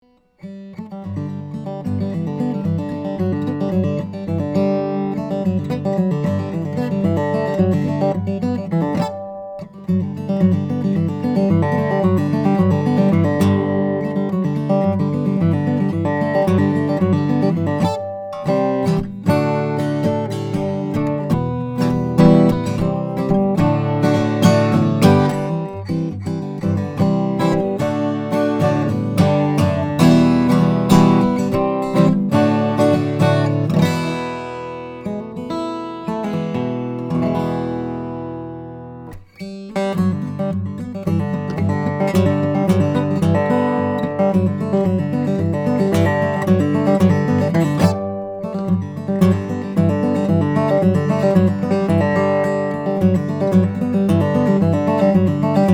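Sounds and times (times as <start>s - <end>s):
country music: 2.7s - 55.7s.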